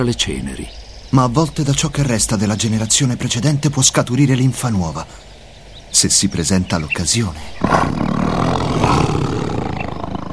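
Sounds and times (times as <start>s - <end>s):
speech: 0.0s - 5.3s, 5.9s - 8.0s, 8.7s - 9.5s
lionesses snarling: 7.3s - 10.3s.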